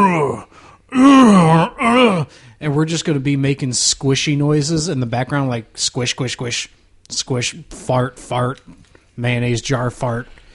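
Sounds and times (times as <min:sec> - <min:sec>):
person imitating zombie moans: 0:00.0 - 0:02.4
speech: 0:02.7 - 0:10.4.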